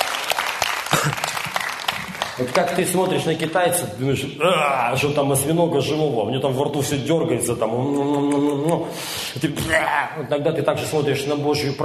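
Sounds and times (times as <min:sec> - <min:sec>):
audience applause: 0:00.0 - 0:03.0
speech: 0:02.4 - 0:11.8.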